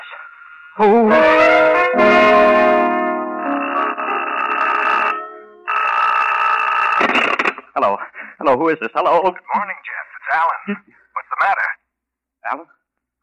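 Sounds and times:
speech: 0.8 - 1.6, 8.5 - 11.0, 12.5 - 12.8
telephone ringing: 1.1 - 7.0.

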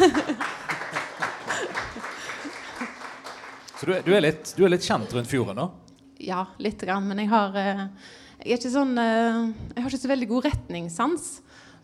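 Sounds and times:
laughter: 0.0 - 2.9
applause: 0.0 - 4.8
speech: 3.8 - 11.6.

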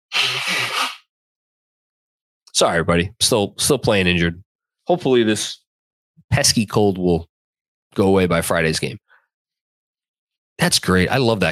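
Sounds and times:
nose blowing: 0.1 - 1.1
speech: 2.6 - 5.6, 6.3 - 7.3, 7.9 - 9.0, 10.6 - 11.5.

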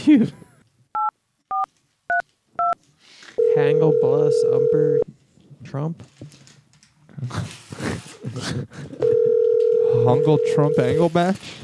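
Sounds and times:
speech: 0.1 - 0.5, 3.6 - 6.5, 7.2 - 9.2, 9.9 - 11.6
touch tones of a telephone number being dialed: 3.4 - 5.0, 9.0 - 11.0.

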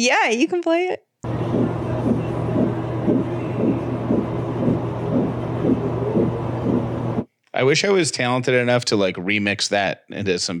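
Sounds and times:
speech: 0.0 - 1.1, 7.6 - 10.5
fetal heartbeat on an ultrasound monitor: 1.2 - 7.3
low electronic hum: 1.2 - 7.3.

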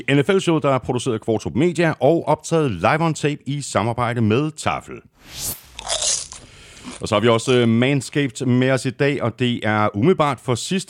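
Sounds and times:
speech: 0.0 - 6.0, 6.9 - 10.8
popcorn being chewed: 5.7 - 7.6.

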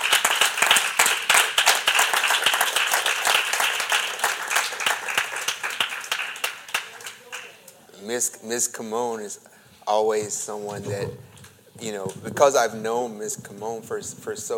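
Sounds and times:
audience clapping: 0.0 - 7.8
speech: 8.0 - 14.5.

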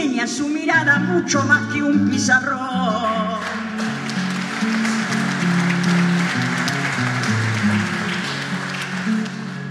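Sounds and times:
speech: 0.2 - 3.6
audience applause: 3.4 - 9.6.

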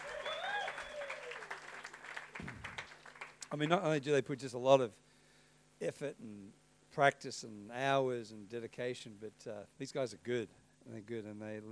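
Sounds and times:
audience cheering and applause: 0.0 - 3.3
speech: 3.5 - 5.0, 5.8 - 11.6.

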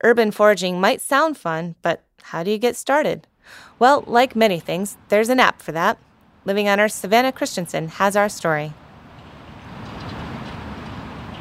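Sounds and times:
speech: 0.0 - 8.8
traffic on Memorial Drive in Cambridge: 3.5 - 11.3.

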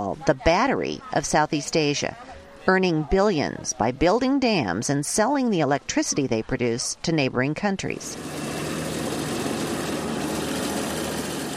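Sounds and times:
speech: 0.1 - 8.4
heavy diesel engine of a road grader leveling a highway: 8.0 - 11.5.

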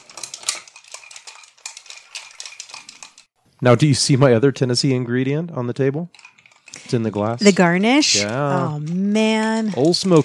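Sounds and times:
stirring a Manhattan cocktail: 0.0 - 3.4, 5.9 - 10.2
speech: 3.6 - 6.2, 6.9 - 10.2.

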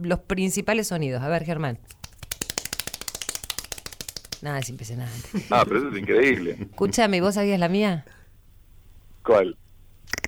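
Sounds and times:
speech: 0.0 - 2.1, 4.4 - 8.2, 9.2 - 9.6
fast hand clapping: 1.9 - 4.8.

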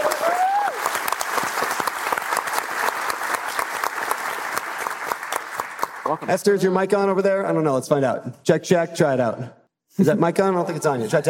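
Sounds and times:
audience applause: 0.0 - 6.3
speech: 6.1 - 11.2.

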